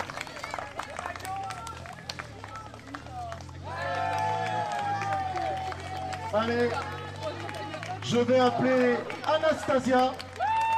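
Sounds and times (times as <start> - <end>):
audience applauding: 0.0 - 10.7
speech: 6.3 - 7.0, 8.1 - 10.2.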